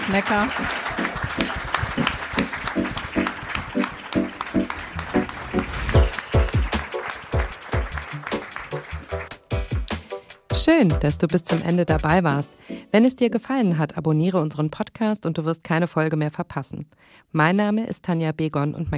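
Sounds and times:
roaring audience applause: 0.0 - 10.0
speech: 0.1 - 0.8, 10.6 - 18.9.

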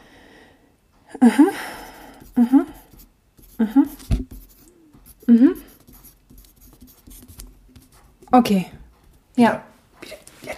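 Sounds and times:
speech: 1.1 - 1.8, 2.4 - 2.8, 3.6 - 4.0, 5.3 - 5.7, 8.3 - 8.8, 9.4 - 9.7
pen scratching on a sheet of paper noting a phone number: 2.1 - 8.1.

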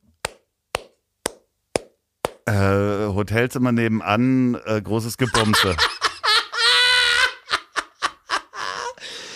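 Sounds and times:
slow clapping: 0.2 - 2.5
speech: 2.5 - 6.0
laughter: 5.2 - 9.0.

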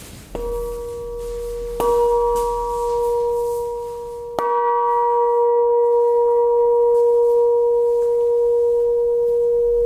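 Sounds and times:
church bell ringing: 0.4 - 9.8.

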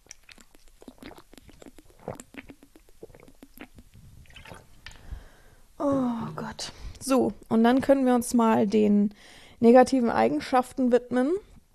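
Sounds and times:
drinking and swallowing: 0.0 - 5.2
speech: 5.8 - 11.5.

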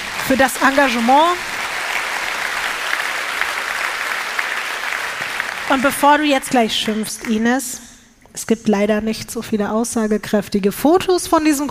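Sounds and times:
audience applause: 0.0 - 7.1
speech: 0.3 - 1.5, 5.7 - 11.7.

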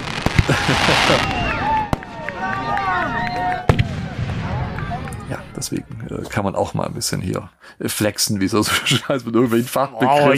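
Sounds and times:
fireworks whistling crackling bursts: 0.0 - 4.9
fireworks sound effect with cracks and bangs: 0.0 - 6.3
laughter: 0.4 - 1.8, 8.6 - 9.6
speech: 0.5 - 1.4, 5.6 - 10.3.

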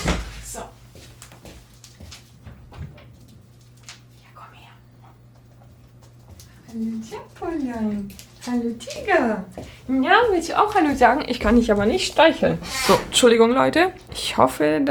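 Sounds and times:
speech: 6.7 - 14.9
chair squeaking: 10.6 - 13.5
door opening for cat: 11.4 - 13.4.

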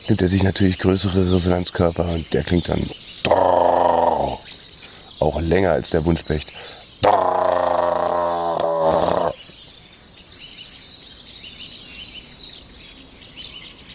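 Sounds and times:
speech: 0.1 - 3.6, 5.2 - 7.3
starling singing overhead: 0.4 - 4.6, 6.6 - 9.4.

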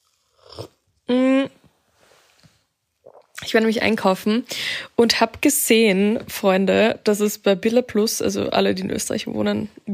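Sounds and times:
person sipping a toffee nut latte: 0.0 - 3.4
speech: 3.5 - 9.9.

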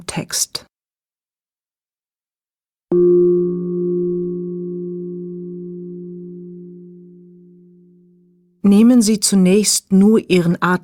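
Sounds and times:
speech: 0.0 - 0.7, 2.9 - 3.7, 8.6 - 10.8
singing bowl gong struck: 2.9 - 8.4.

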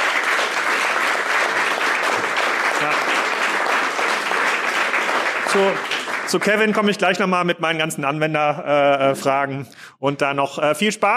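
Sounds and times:
audience applause: 0.0 - 7.1
speech: 5.5 - 11.1.

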